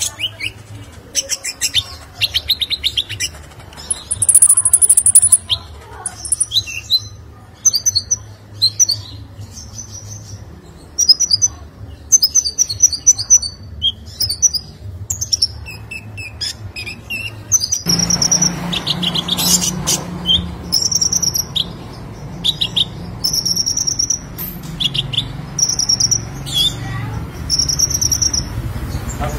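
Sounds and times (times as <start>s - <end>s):
sunbird song: 1.2s - 29.2s.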